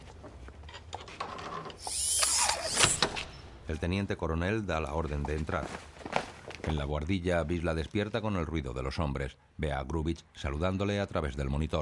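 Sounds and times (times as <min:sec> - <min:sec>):
electric lock pick opening a door: 0:01.7 - 0:03.3
speech: 0:03.7 - 0:05.9, 0:06.6 - 0:11.8.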